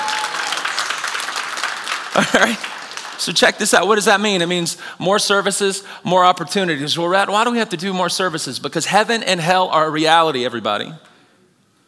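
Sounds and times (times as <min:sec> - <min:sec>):
audience clapping: 0:00.0 - 0:03.8
laughter: 0:02.1 - 0:02.7
speech: 0:02.2 - 0:11.1.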